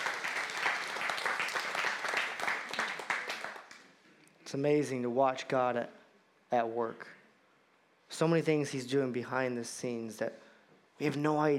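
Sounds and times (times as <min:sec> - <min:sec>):
audience clapping: 0:00.0 - 0:04.0
speech: 0:04.5 - 0:07.2, 0:08.1 - 0:10.4, 0:11.0 - 0:11.5.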